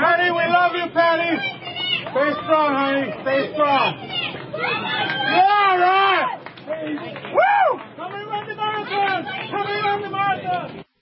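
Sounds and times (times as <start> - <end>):
crowd of people yelling: 0.0 - 10.8.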